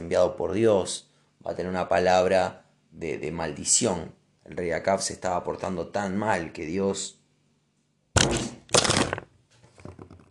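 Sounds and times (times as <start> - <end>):
speech: 0.1 - 7.2, 8.2 - 8.6
mobile phone thrown down: 8.2 - 10.3.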